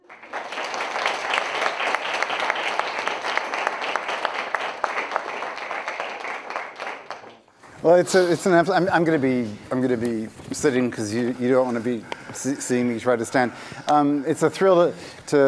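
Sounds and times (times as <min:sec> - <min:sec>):
audience applause welcoming a professor before a philosophy lecture: 0:00.0 - 0:07.8
speech: 0:07.8 - 0:15.4.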